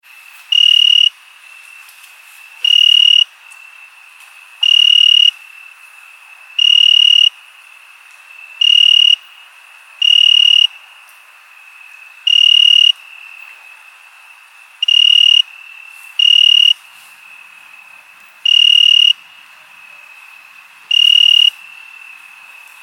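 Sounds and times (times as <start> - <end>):
ringtone: 0.6 - 1.1, 2.7 - 3.2, 4.7 - 5.3, 6.6 - 7.3, 8.6 - 9.2, 10.0 - 10.7, 12.3 - 12.9, 14.8 - 15.4, 16.2 - 16.8, 18.5 - 19.1, 20.9 - 21.5.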